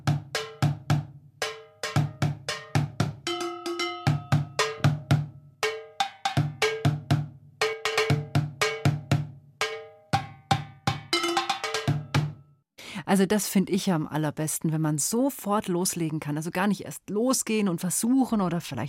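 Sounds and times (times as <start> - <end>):
improvised drumming on metal pots and plastic bins: 0.0 - 12.5
speech: 13.1 - 18.8.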